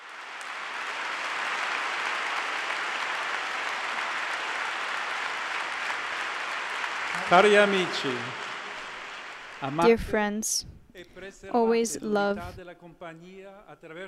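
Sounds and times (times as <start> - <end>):
crowd applause: 0.0 - 9.9
speech: 7.3 - 8.4, 9.6 - 14.0.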